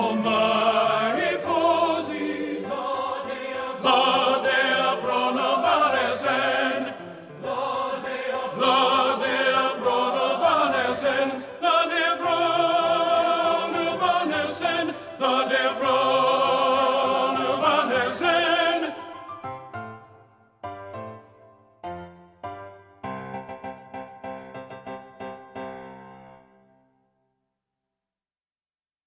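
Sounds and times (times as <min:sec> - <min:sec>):
tenor singing: 0:00.0 - 0:19.5.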